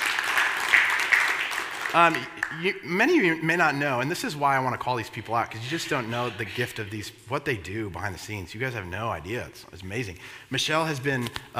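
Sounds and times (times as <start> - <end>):
audience applause honoring a staff member: 0.0 - 2.7
speech: 2.0 - 11.5.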